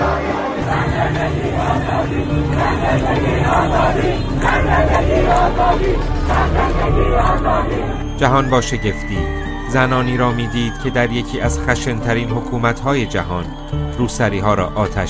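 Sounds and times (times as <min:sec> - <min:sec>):
protest crowd chanting slogans: 0:00.0 - 0:08.6
speech: 0:08.2 - 0:15.0.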